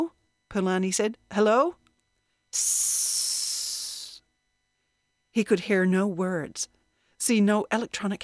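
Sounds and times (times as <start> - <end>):
speech: 0.0 - 1.8, 2.5 - 3.3, 5.4 - 8.2
radio static hiss: 2.6 - 4.2.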